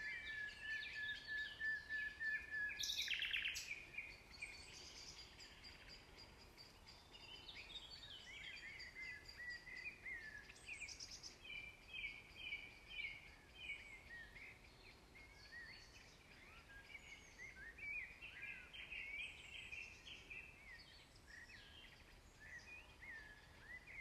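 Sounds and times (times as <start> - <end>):
nightingale: 0.0 - 24.0.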